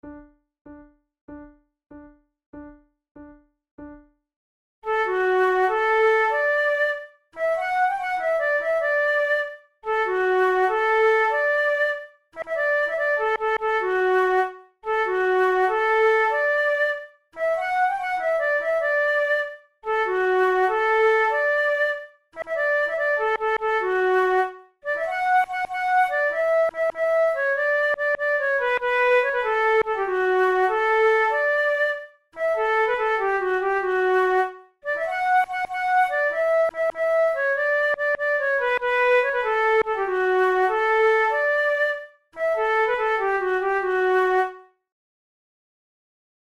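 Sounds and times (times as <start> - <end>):
flute duet: 4.8 - 44.8.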